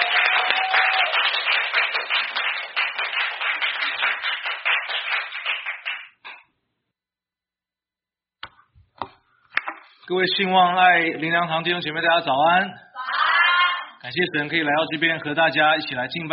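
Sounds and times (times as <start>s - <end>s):
audience applauding: 0.0s - 6.2s
speech: 10.1s - 12.8s, 14.1s - 16.3s.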